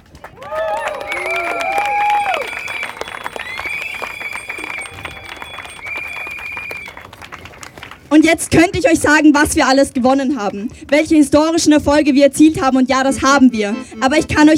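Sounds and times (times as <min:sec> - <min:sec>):
crowd applause: 0:00.0 - 0:08.3
cheering voices: 0:00.2 - 0:07.8
high-pitched whistles: 0:00.5 - 0:07.9
speech: 0:08.2 - 0:14.5.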